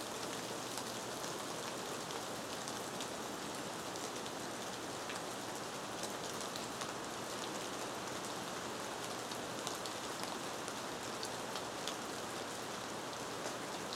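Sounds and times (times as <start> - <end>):
soft rain in a rainforest: 0.0 - 13.9.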